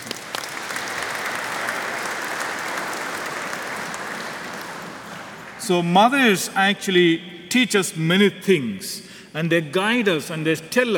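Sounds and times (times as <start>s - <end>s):
audience applause: 0.0s - 5.6s
speech: 5.6s - 10.9s.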